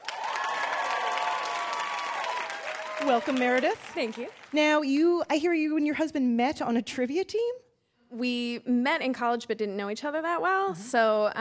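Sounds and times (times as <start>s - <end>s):
game show studio audience applauding and cheering to welcome a contestant: 0.0s - 4.6s
speech: 3.0s - 11.3s.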